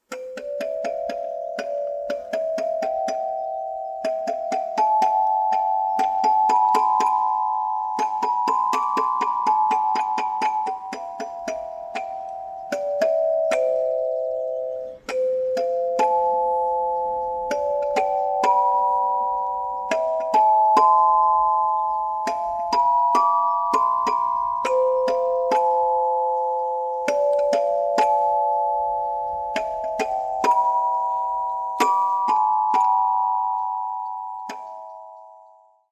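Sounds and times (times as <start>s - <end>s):
marimba: 0.0s - 35.6s.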